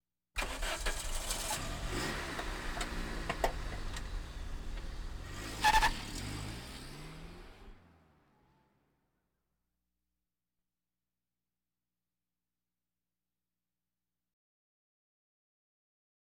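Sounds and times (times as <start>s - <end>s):
various automobiles: 0.4s - 9.1s.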